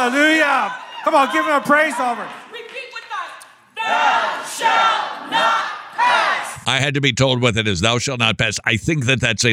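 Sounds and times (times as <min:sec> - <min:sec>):
speech: 0:00.0 - 0:02.4, 0:06.6 - 0:09.5
crowd shouting and chanting: 0:00.0 - 0:06.8.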